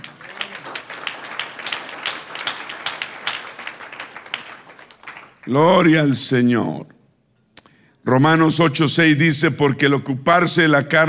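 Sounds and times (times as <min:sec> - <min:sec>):
audience applause: 0:00.0 - 0:05.6
speech: 0:05.5 - 0:06.9, 0:08.1 - 0:11.0.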